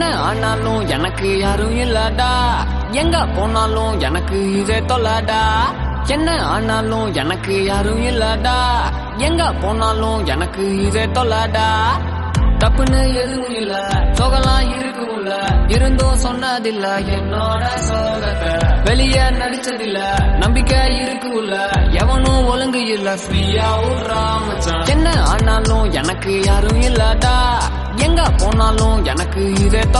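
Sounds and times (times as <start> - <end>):
Tamil album song: 0.0 - 29.9.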